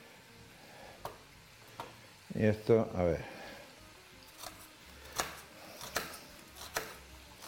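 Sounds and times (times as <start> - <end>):
speech: 2.4 - 3.4
knife cutting food on a board: 4.3 - 7.4.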